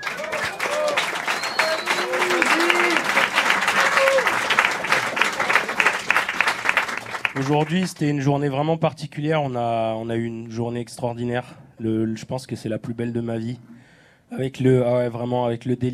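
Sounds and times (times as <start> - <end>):
audience applause: 0.0 - 8.0
speech: 7.4 - 13.7, 14.3 - 15.9.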